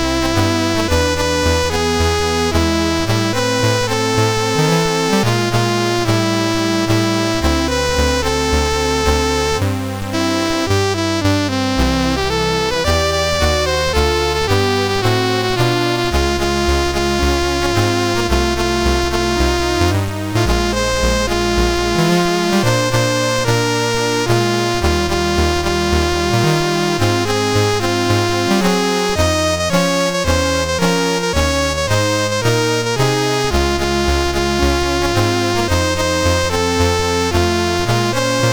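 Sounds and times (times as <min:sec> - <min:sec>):
blues music: 0:00.0 - 0:38.5.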